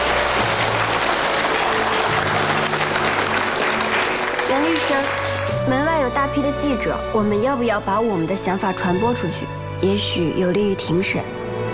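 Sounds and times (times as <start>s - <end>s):
applause: 0.0s - 5.6s
speech: 4.9s - 11.4s.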